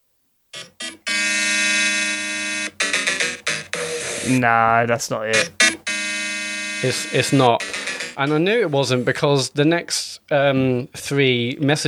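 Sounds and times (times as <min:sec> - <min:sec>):
video game castle theme music: 0:00.6 - 0:04.4, 0:05.3 - 0:08.8
speech: 0:04.2 - 0:05.6, 0:06.8 - 0:07.6, 0:08.2 - 0:11.8.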